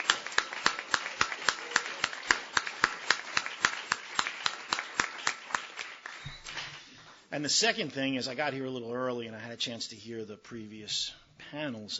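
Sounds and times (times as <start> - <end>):
audience clapping: 0.0 - 7.2
speech: 7.4 - 11.9.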